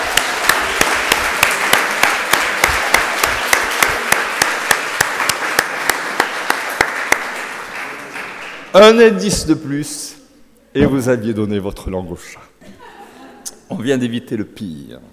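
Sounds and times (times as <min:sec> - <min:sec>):
audience applause: 0:00.0 - 0:08.8
loud evenly spaced rhythmic claps: 0:00.0 - 0:09.7
speech: 0:08.8 - 0:10.2, 0:10.8 - 0:12.5, 0:13.7 - 0:15.1
laughter: 0:12.6 - 0:13.6.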